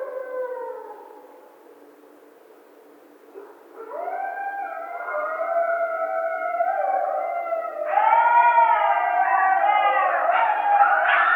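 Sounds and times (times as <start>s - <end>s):
coyote group howling with yodel-like notes and yips: 0.0s - 1.6s, 3.4s - 11.3s.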